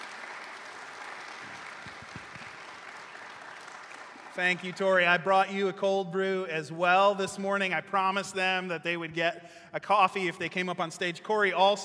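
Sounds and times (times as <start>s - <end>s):
audience applause: 0.0s - 4.9s
speech: 4.4s - 11.8s.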